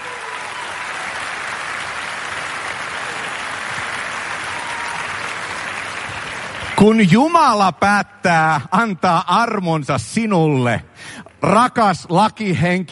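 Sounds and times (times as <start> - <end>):
audience applause: 0.0 - 7.2
speech: 6.8 - 12.9.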